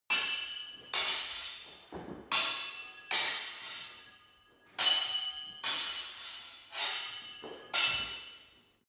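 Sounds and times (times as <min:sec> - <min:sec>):
sword hitting sword: 0:00.1 - 0:08.6.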